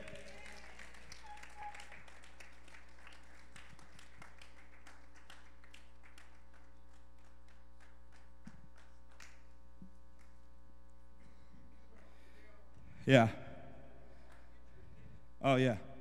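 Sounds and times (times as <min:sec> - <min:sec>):
round of applause from audience: 0:00.0 - 0:09.5
speech: 0:13.1 - 0:13.4, 0:15.5 - 0:15.9.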